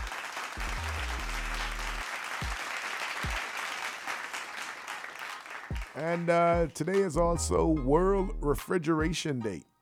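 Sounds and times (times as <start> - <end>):
round of applause: 0.0 - 7.0
speech: 6.0 - 9.7.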